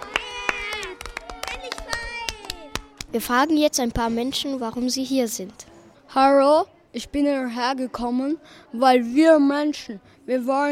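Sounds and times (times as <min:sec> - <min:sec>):
crowd cheering outside parliament: 0:00.0 - 0:03.1
hand claps: 0:00.0 - 0:03.2
speech: 0:03.1 - 0:10.7.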